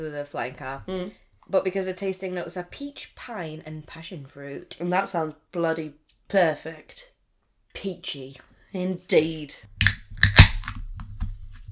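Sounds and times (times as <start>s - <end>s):
speech: 0.0s - 7.1s, 7.7s - 9.7s
drink can cracking open: 9.8s - 10.9s.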